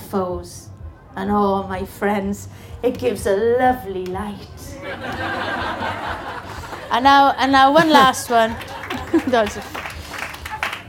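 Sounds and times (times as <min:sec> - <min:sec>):
speech: 0:00.1 - 0:06.2, 0:06.9 - 0:08.7, 0:09.3 - 0:09.8
laughter: 0:04.7 - 0:10.8
audience clapping: 0:07.8 - 0:10.8.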